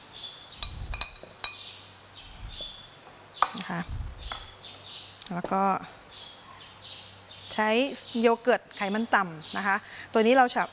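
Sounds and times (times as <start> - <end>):
light glass clinks of a bowl: 0.6 - 1.7
speech: 3.5 - 4.0, 5.3 - 6.0, 7.6 - 10.7.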